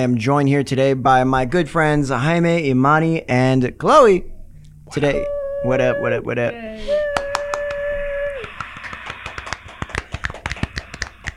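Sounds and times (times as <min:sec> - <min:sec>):
speech: 0:00.0 - 0:04.3, 0:04.9 - 0:07.2
studio audience clapping: 0:06.9 - 0:11.3.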